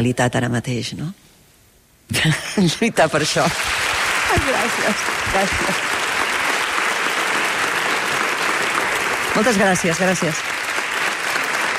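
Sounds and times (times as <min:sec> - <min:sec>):
speech: 0:00.0 - 0:01.3, 0:02.1 - 0:06.0, 0:09.4 - 0:10.5
audience applause: 0:03.3 - 0:11.7.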